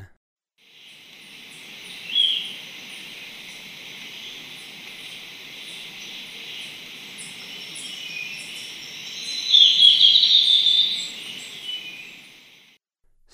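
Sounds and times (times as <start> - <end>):
insects hissing and pulsing: 0.6 - 12.8
Golden-faced Tyrannulet call with twittering high notes: 0.8 - 12.7.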